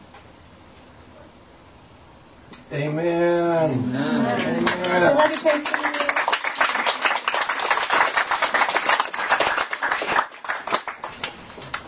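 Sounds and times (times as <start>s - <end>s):
speech: 2.7s - 6.1s
audience applause: 4.0s - 11.8s.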